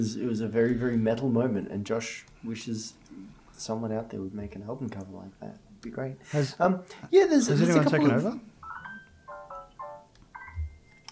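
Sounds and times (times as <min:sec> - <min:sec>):
speech: 0:00.0 - 0:08.5
mobile phone ringtone melody: 0:08.6 - 0:11.0.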